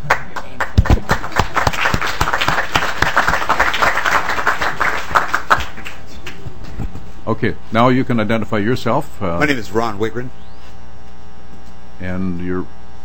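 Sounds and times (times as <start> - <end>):
applause for a group of students: 0.0 - 6.5
speech: 7.4 - 10.5, 12.0 - 12.8.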